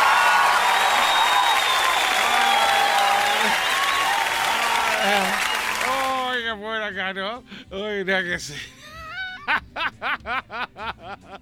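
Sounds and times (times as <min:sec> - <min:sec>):
laughter: 0:00.0 - 0:06.3, 0:08.4 - 0:11.4
applause: 0:00.0 - 0:06.4
speech: 0:06.7 - 0:08.8, 0:09.5 - 0:11.4.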